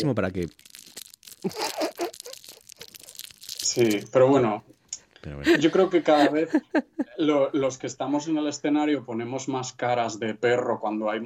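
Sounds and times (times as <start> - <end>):
speech: 0.0 - 0.8, 1.4 - 1.8, 3.7 - 11.2
candy wrapper being unwrapped: 0.0 - 5.0
laughter: 1.5 - 2.4, 5.3 - 7.2.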